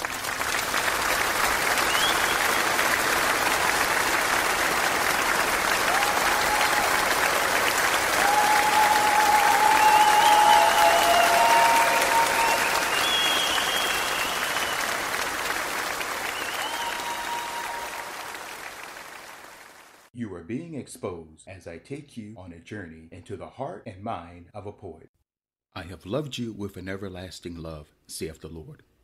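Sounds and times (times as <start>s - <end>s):
audience applause for guests: 0.0s - 20.1s
speech: 21.6s - 25.2s, 25.8s - 28.9s.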